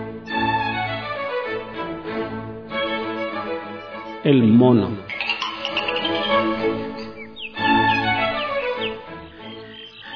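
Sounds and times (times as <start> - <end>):
small birds chirping: 0.2 - 0.7, 2.7 - 10.1
speech: 4.3 - 5.0.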